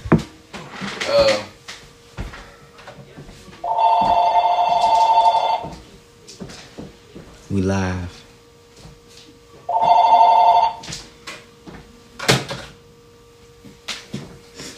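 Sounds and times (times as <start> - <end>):
phone ringing in the house: 3.6 - 5.8, 9.6 - 10.9
speech: 7.6 - 8.2.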